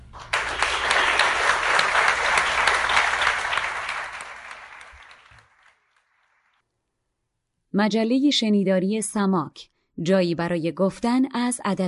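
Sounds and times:
audience applause: 0:00.1 - 0:06.6
speech: 0:07.8 - 0:11.8.

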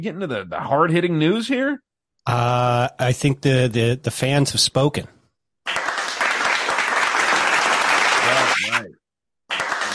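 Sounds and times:
speech: 0:00.0 - 0:05.2
applause sound effect: 0:05.7 - 0:08.9, 0:09.5 - 0:09.9.

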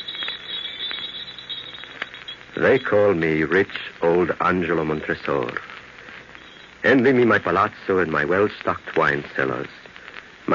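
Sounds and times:
jester's bells ringing: 0:00.0 - 0:03.3
speech: 0:02.6 - 0:05.7, 0:06.8 - 0:09.8.

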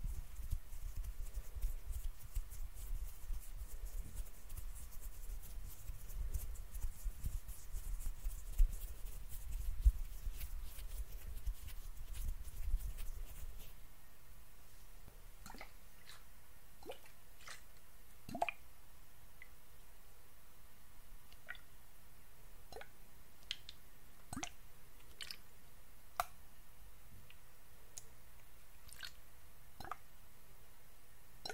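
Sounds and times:
face cleaning rustling and rubbing: 0:00.0 - 0:13.9, 0:14.6 - 0:15.2
faint hiss: 0:00.0 - 0:31.5.

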